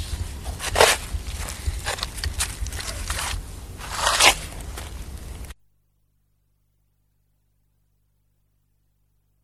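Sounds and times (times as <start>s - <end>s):
spade digging: 0.0s - 5.0s.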